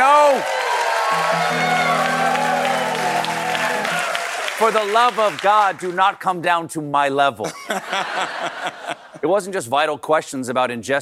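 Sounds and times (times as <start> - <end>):
cheering and hooting: 0.0 - 5.4
crowd clapping: 0.0 - 6.2
speech: 4.6 - 10.9
laughter: 7.4 - 9.2.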